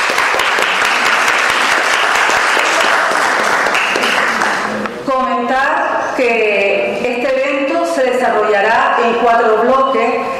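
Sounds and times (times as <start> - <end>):
audience applause: 0.0 - 4.9
speech: 5.6 - 7.4, 8.0 - 10.3.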